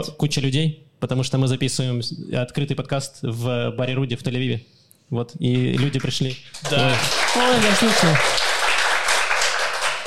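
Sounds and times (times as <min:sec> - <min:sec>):
speech: 0:00.0 - 0:08.5
live audience in a bar applauding: 0:05.7 - 0:10.0.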